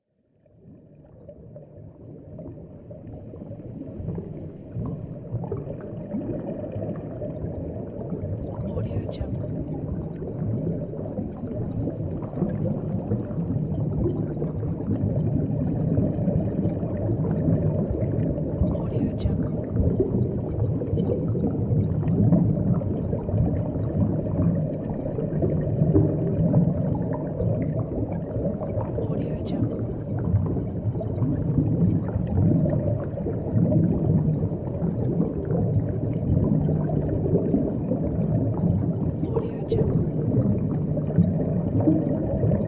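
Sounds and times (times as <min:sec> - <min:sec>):
deep underwater ambience: 0:00.0 - 0:42.6.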